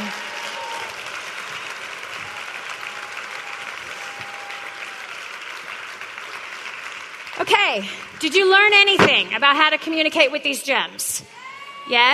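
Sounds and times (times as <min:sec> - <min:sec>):
audience applause: 0:00.0 - 0:09.0
speech: 0:07.5 - 0:12.1.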